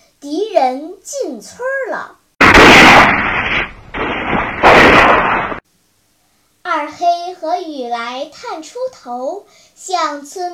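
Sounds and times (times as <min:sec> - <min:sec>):
speech: 0:00.2 - 0:02.2, 0:06.9 - 0:10.5
gunshots in Luhua village: 0:02.4 - 0:05.6.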